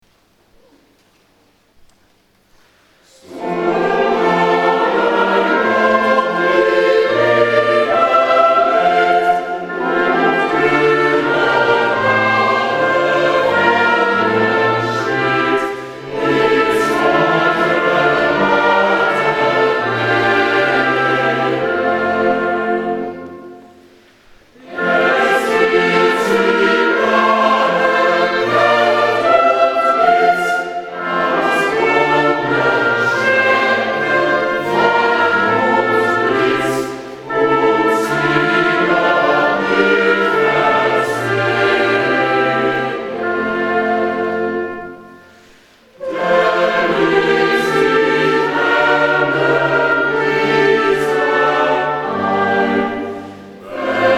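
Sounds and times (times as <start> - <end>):
choir singing: 3.0 - 54.1.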